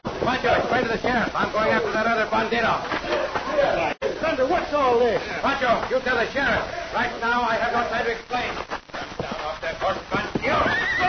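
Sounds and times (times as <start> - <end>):
horse hooves clip-clopping: 0.0 - 3.9, 4.5 - 11.0
speech: 0.3 - 8.8
horse neighing in a western scene: 10.4 - 11.0.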